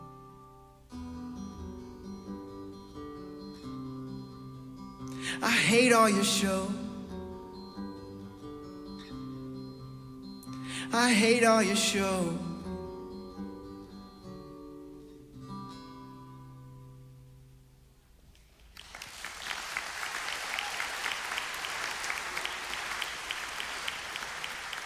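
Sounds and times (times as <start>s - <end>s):
speech: 5.4s - 6.8s, 11.0s - 12.5s
audience clapping: 18.3s - 24.8s.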